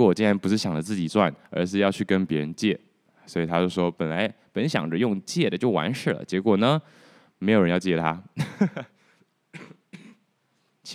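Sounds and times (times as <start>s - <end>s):
speech: 0.0s - 8.9s
cough: 9.5s - 10.3s.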